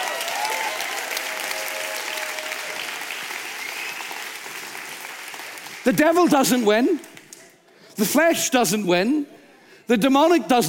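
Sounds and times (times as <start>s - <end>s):
audience round of applause: 0.0s - 6.1s
speech: 5.8s - 7.1s, 8.0s - 10.6s.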